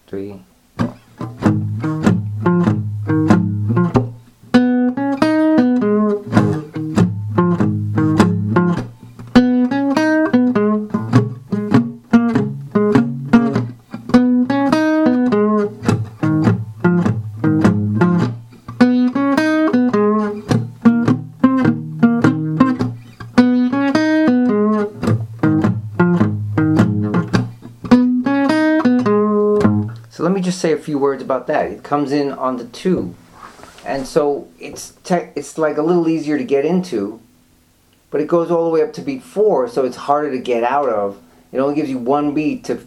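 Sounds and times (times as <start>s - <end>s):
speech: 0.1s - 0.5s, 30.8s - 33.2s, 33.9s - 37.2s, 38.1s - 42.8s
guitar lick played in an E shape around the fourth fret: 0.8s - 33.3s.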